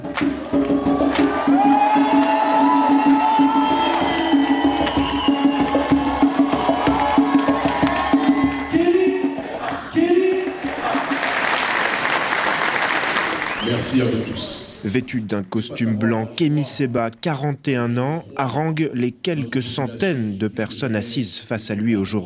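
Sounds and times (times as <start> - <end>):
excited crowd cheering and applauding: 0.0 - 14.2
speech: 14.8 - 22.2.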